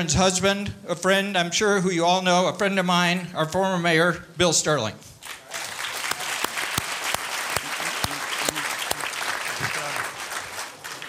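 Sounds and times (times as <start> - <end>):
speech: 0.0 - 5.1
audience applause: 5.2 - 11.0.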